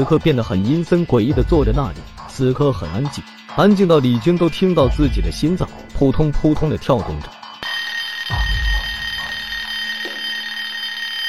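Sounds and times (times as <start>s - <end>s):
speech: 0.0s - 7.4s
mobile phone ringing: 7.6s - 11.2s.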